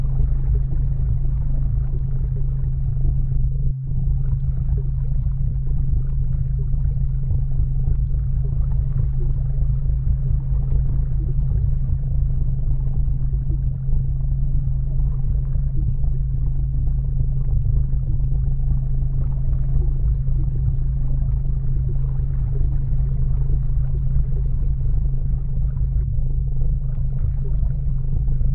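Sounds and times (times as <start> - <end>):
soothing water flowing: 0.0 - 26.0, 26.6 - 28.5
low hum: 0.0 - 28.5
very low white noise: 0.0 - 28.5.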